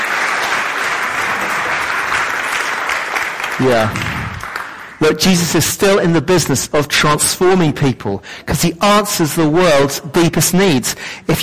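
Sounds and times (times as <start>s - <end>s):
audience applause: 0.0s - 5.0s
speech: 3.6s - 4.2s, 5.0s - 11.4s.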